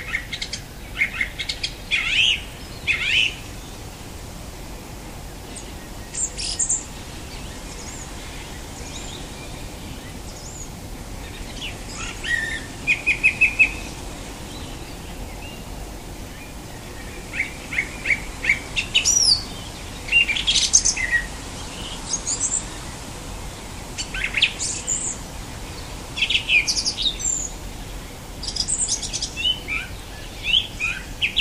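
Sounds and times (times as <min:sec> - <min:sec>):
song thrush singing whistled, squeaky and fluty phrases: 0:00.0 - 0:31.3.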